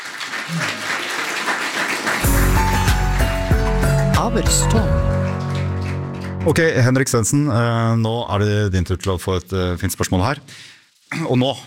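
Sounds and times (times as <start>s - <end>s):
audience applause: 0.0s - 6.9s
speech: 0.5s - 0.9s, 4.2s - 5.1s, 6.4s - 11.6s.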